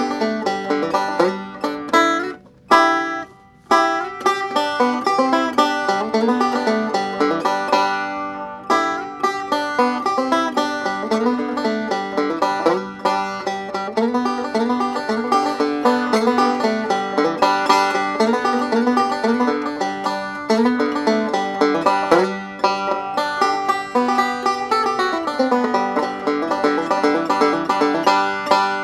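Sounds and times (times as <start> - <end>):
banjo hard picking: 0.0 - 28.8.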